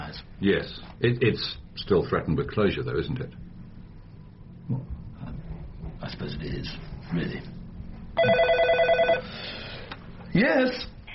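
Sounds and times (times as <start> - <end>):
low hum: 0.0 - 11.1
speech: 0.4 - 3.4, 4.7 - 4.9, 6.1 - 7.6, 8.2 - 8.6, 10.3 - 11.0
telephone bell ringing: 8.2 - 9.3.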